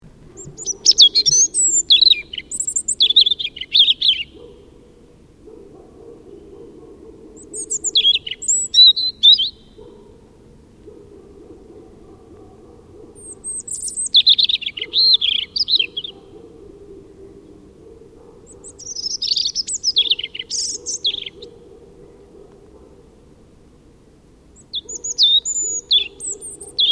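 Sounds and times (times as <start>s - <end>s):
European robin song: 0.4s - 4.6s, 7.4s - 9.8s, 13.2s - 16.2s, 18.6s - 21.5s, 24.6s - 26.8s.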